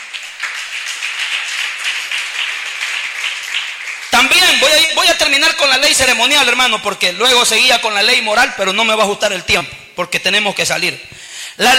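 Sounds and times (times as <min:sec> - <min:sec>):
audience applauding: 0:00.0 - 0:05.3
speech: 0:04.2 - 0:11.7.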